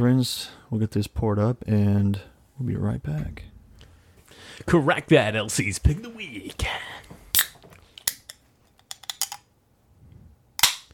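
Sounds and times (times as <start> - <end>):
speech: 0.0 - 3.5, 4.4 - 7.2
beer container slowly opened with clicks and metallic cracks: 7.4 - 9.4, 10.6 - 10.9.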